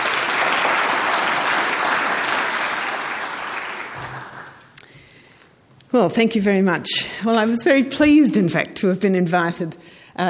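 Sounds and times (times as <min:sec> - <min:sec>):
lecture audience applause welcoming a speaker to the podium: 0:00.0 - 0:04.7
speech: 0:06.0 - 0:10.2.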